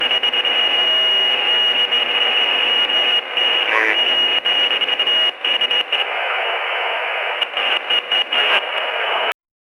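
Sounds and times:
CB radio: 0.0s - 9.4s.

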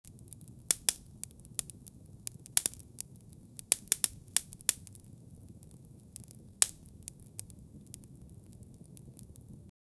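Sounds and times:
camp fire being lit: 0.0s - 9.7s.

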